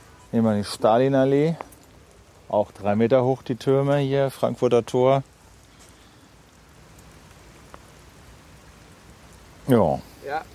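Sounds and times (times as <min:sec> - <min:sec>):
rain falling outdoors: 0:00.0 - 0:10.5
speech: 0:00.3 - 0:01.7, 0:02.5 - 0:05.3, 0:09.7 - 0:10.5.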